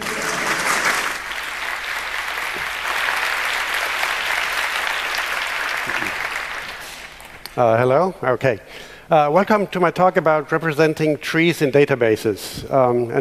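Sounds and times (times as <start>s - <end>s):
conference audience applauding a speaker: 0.0s - 7.2s
speech: 7.6s - 13.1s.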